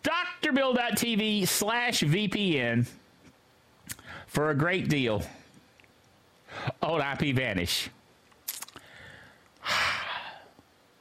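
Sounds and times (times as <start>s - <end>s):
speech: 0.6s - 3.0s, 4.2s - 5.4s, 6.5s - 8.0s
deep cleansing breath exhale: 8.8s - 10.5s.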